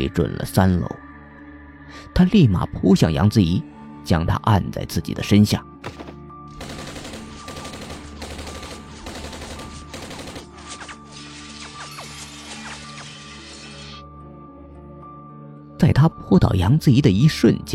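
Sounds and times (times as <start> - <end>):
speech: 0.0 - 1.0, 1.9 - 6.2, 16.0 - 17.7
MP5 submachine gun automatic gunfire in a school corridor: 5.8 - 11.0
dozens of glass panes shattering: 11.4 - 13.1.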